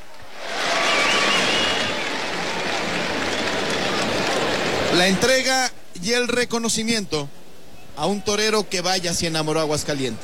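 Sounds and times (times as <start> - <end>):
bullring crowd ovation: 0.0 - 5.3
speech: 5.0 - 7.4, 8.0 - 10.2.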